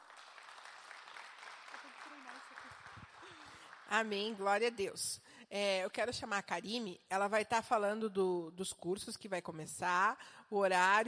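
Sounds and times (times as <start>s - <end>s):
audience applause: 0.0s - 4.1s
speech: 2.4s - 3.0s, 3.9s - 11.0s.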